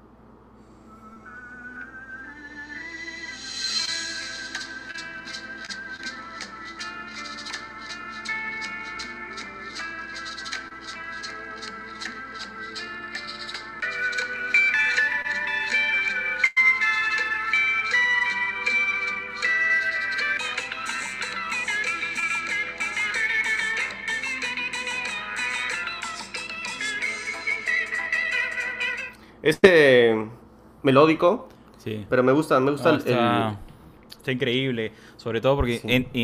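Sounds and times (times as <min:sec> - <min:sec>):
song with a bolero-style intro: 0:01.0 - 0:29.2
speech: 0:29.6 - 0:29.9, 0:30.8 - 0:33.7, 0:34.3 - 0:36.2.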